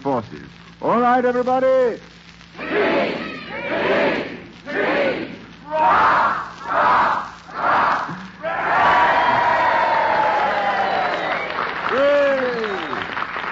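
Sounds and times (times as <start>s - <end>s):
speech: 0.0s - 6.8s
crowd chanting a cheer: 2.6s - 11.5s
high yells: 2.6s - 12.9s
crowd cheering: 2.6s - 13.5s.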